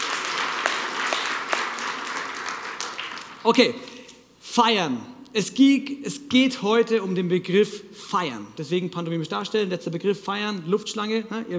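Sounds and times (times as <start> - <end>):
audience applause: 0.0 - 3.6
speech: 3.4 - 11.5.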